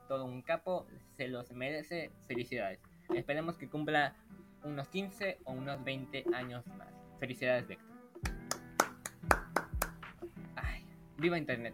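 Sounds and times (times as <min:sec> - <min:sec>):
speech: 0:00.1 - 0:07.9, 0:11.2 - 0:11.7
rhythmic hand clapping in applause: 0:08.2 - 0:10.4.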